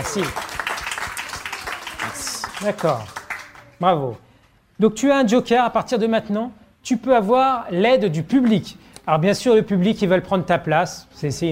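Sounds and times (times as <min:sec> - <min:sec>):
audience applause: 0:00.0 - 0:03.7
speech: 0:00.1 - 0:00.4, 0:02.1 - 0:03.2, 0:03.8 - 0:11.4.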